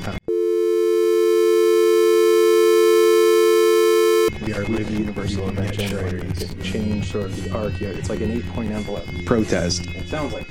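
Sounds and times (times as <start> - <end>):
speech: 0.0 - 0.3, 5.7 - 10.4
telephone dial tone: 0.3 - 4.3.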